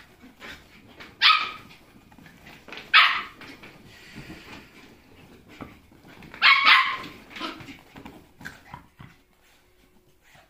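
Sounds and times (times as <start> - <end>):
paws scrabbling: 0.0 - 10.4
domestic dog barking: 1.2 - 1.7, 2.9 - 3.4, 6.4 - 7.6.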